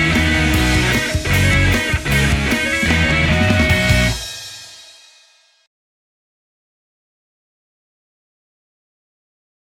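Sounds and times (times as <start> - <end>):
music beat: 0.0 - 5.4.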